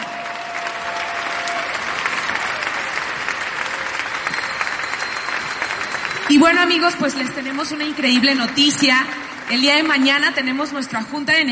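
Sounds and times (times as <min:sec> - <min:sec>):
audience applause: 0:00.0 - 0:11.1
speech: 0:06.3 - 0:11.5.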